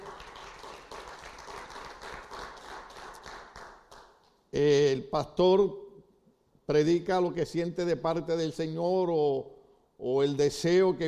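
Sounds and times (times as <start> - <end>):
audience applauding: 0.0 - 4.1
speech: 4.6 - 5.8, 6.7 - 11.0.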